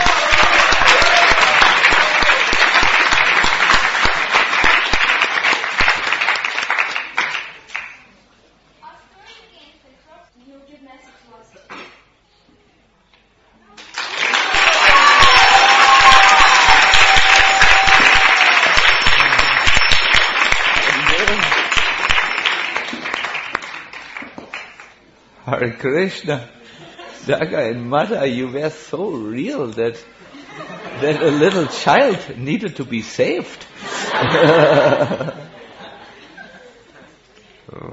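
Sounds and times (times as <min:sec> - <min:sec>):
audience applause: 0:00.0 - 0:08.0, 0:13.8 - 0:25.0, 0:31.0 - 0:32.1
whistles and cheers: 0:14.4 - 0:18.8
speech: 0:25.8 - 0:26.6, 0:27.2 - 0:30.2, 0:31.0 - 0:35.4
laughter: 0:30.3 - 0:32.2, 0:33.8 - 0:37.2.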